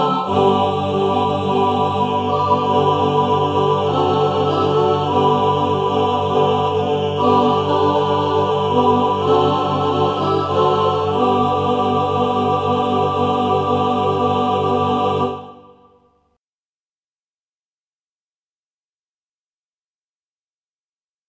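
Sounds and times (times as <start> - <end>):
SSAATBB choir singing: 0.0 - 16.0.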